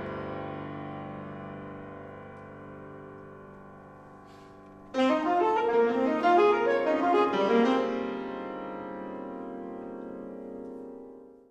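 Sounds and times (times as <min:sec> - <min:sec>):
saxophone music: 0:04.9 - 0:08.3.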